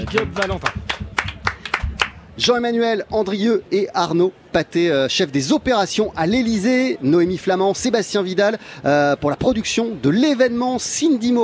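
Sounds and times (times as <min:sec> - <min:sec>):
speech: 0:00.0 - 0:00.9, 0:02.4 - 0:11.4
audience applause: 0:00.0 - 0:02.2.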